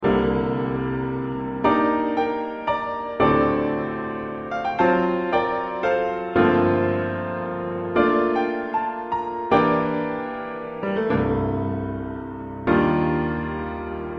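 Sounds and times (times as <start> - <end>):
piano: 0.0 - 14.1.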